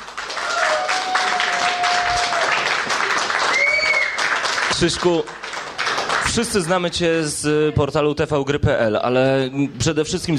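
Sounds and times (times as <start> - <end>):
applause: 0.0 - 6.7
speech: 4.8 - 5.4, 6.4 - 10.3.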